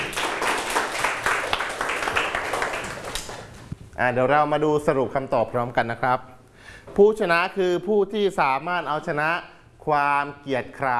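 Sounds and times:
applause: 0.0s - 3.6s
speech: 4.0s - 10.9s.

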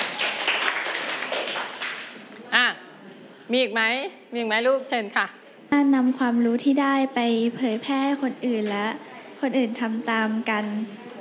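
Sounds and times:
classroom clapping for a classmate: 0.0s - 2.3s
speech: 3.5s - 11.1s.

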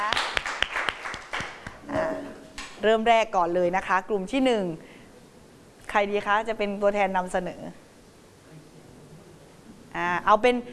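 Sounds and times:
small group of audience clapping: 0.0s - 2.8s
speech: 2.8s - 4.9s, 5.9s - 7.8s, 10.0s - 10.7s.

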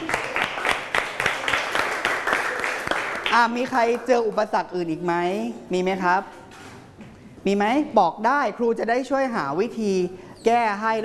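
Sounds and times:
students clapping for a classmate: 0.0s - 4.1s
speech: 3.4s - 6.4s, 7.4s - 11.0s.

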